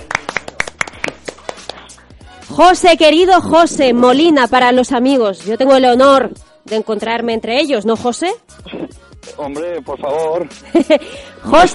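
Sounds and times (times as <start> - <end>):
clapping applause: 0.0 - 2.1
speech: 2.5 - 8.8, 9.4 - 11.7
laughter: 10.4 - 11.2.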